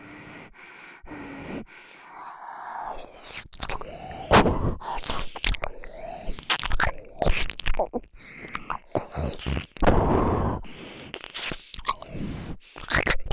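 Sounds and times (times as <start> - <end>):
nose breathing: 0.0 - 13.3
ear licking sounds: 3.0 - 13.3.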